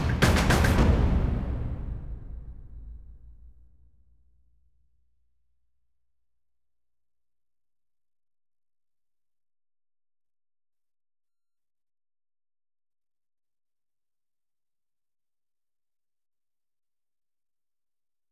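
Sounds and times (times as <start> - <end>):
percussion: 0.0 - 3.8.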